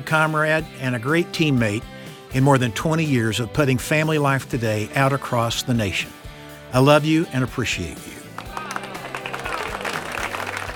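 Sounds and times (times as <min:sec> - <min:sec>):
speech: 0:00.0 - 0:08.1
audience applause: 0:08.3 - 0:10.7.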